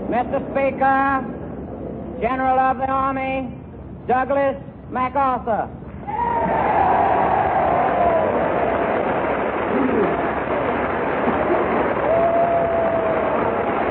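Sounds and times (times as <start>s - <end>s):
speech: 0.1s - 1.3s, 2.2s - 5.8s
large assembly applauding: 6.2s - 13.8s.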